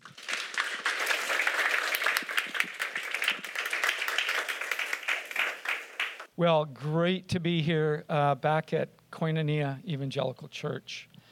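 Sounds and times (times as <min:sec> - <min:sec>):
applause at Koinonia Evangelical Church: 0:00.0 - 0:06.3
speech: 0:06.4 - 0:11.1.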